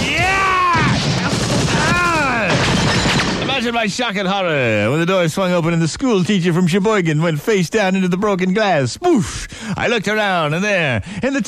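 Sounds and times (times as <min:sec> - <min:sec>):
burst of gunfire: 0:00.0 - 0:03.8
speech: 0:03.7 - 0:11.4.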